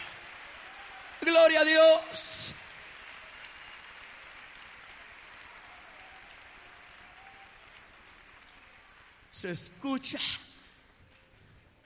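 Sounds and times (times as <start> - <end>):
audience applauding: 0.0 - 9.4
speech: 1.2 - 2.5, 9.4 - 10.5.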